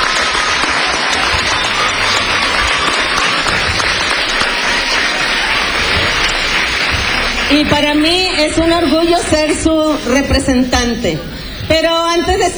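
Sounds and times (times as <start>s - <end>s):
crowd applauding: 0.0s - 11.0s
speech: 7.5s - 12.5s.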